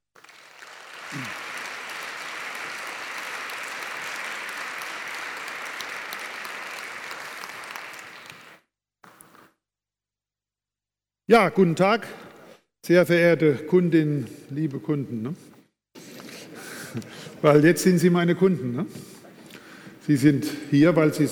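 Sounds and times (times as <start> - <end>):
crowd applauding: 0.1 - 8.6
speech: 1.1 - 1.4, 11.3 - 12.2, 12.8 - 15.6, 17.0 - 19.1, 20.1 - 21.3.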